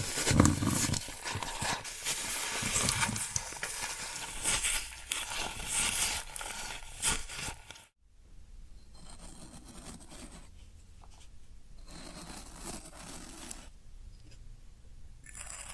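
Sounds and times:
floral foam being crushed and scraped: 0.0 - 7.9
rough rubbing: 0.0 - 7.9, 11.8 - 13.7.

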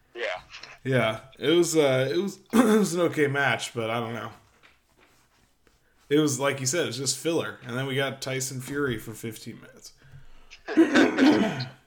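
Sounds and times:
speech: 0.8 - 4.4, 6.1 - 10.0
person clearing throat with something stuck in it: 10.7 - 11.8.

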